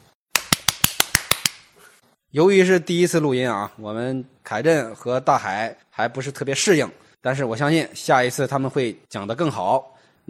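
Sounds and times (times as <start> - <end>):
applause: 0.4 - 1.6
speech: 2.3 - 10.2.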